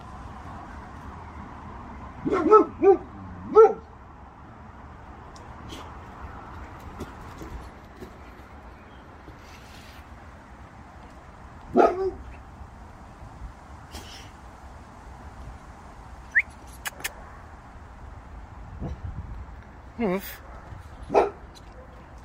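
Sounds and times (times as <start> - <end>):
Boxer dog barking: 2.2 - 3.9, 11.7 - 12.3, 20.4 - 22.0.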